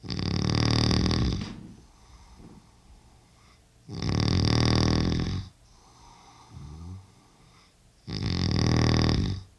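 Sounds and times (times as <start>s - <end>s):
man snoring loudly in bedroom: 0.0s - 1.4s, 3.9s - 5.5s, 8.1s - 9.5s.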